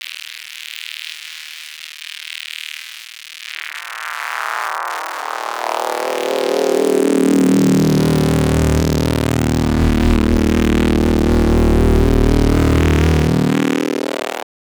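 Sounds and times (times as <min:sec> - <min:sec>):
filtered synth pads: 0:05.3 - 0:14.4.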